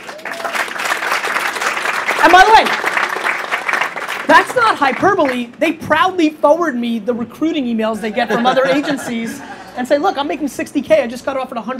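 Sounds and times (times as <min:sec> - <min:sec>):
audience applause: 0:00.0 - 0:05.4
speech: 0:02.2 - 0:02.9, 0:04.3 - 0:11.7
laughter: 0:08.0 - 0:10.0.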